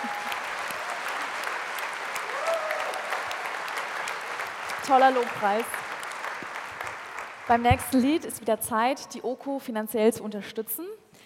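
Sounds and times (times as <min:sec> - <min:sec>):
audience clapping: 0:00.0 - 0:08.5
speech: 0:04.8 - 0:05.8, 0:07.5 - 0:10.9.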